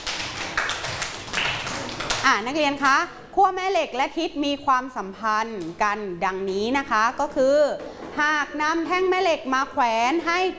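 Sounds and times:
students clapping: 0:00.0 - 0:02.3
speech: 0:02.2 - 0:10.5.

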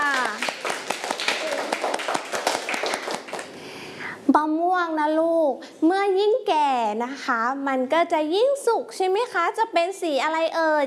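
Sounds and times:
children clapping for the second group: 0:00.0 - 0:03.6
speech: 0:04.3 - 0:10.8.

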